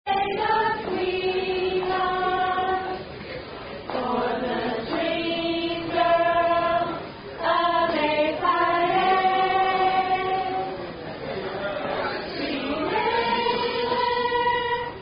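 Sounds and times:
sorority members singing a sorority song: 0:00.1 - 0:03.1, 0:03.8 - 0:10.9, 0:11.7 - 0:15.0.

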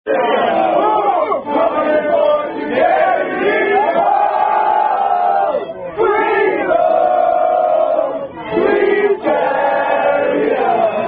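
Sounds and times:
people singing a song at a rugby social: 0:00.1 - 0:11.0.

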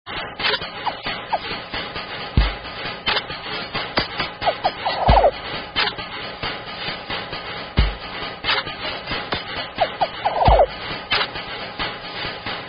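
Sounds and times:
metal hits: 0:00.1 - 0:12.4.

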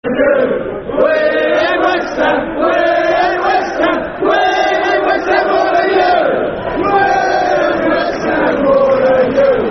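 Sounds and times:
football chant: 0:00.1 - 0:09.7.

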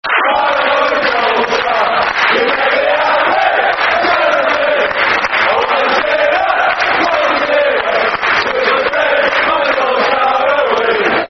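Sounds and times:
football crowd chanting: 0:00.0 - 0:11.2.

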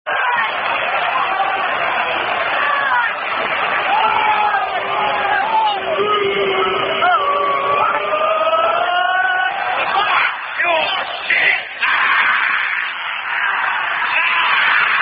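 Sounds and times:
football fans chanting: 0:00.1 - 0:15.0.

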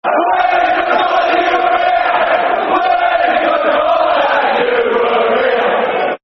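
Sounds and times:
football crowd chanting: 0:00.0 - 0:06.2.

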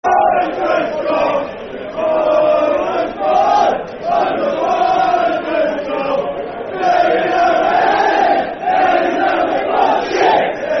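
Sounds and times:
football fans chanting: 0:00.0 - 0:10.7.

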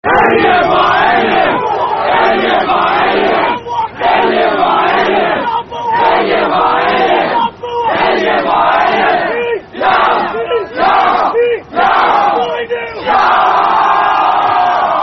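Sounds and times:
rugby crowd chant: 0:00.0 - 0:15.0.

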